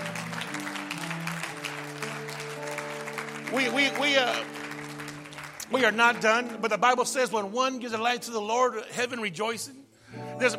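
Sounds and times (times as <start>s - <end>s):
audience clapping: 0.0s - 7.4s
speech: 3.5s - 4.6s, 5.7s - 10.5s.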